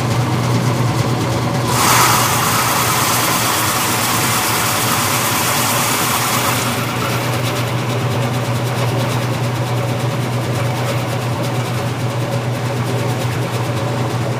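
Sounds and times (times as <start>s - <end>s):
washing machine running: 0.0s - 14.3s.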